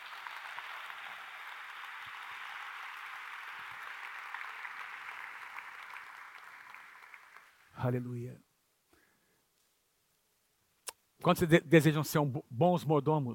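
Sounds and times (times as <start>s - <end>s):
audience applause: 0.0s - 7.7s
speech: 7.8s - 8.5s, 11.2s - 13.3s.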